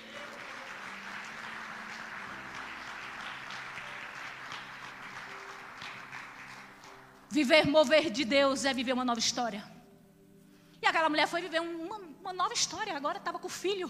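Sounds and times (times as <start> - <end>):
audience applause: 0.0 - 7.2
speech: 7.3 - 9.7, 11.1 - 13.8.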